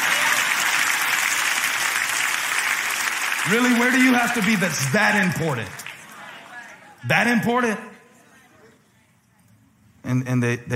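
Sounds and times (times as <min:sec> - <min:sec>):
audience clapping: 0:00.0 - 0:07.0
speech: 0:03.4 - 0:05.8, 0:07.0 - 0:07.9, 0:10.1 - 0:10.7.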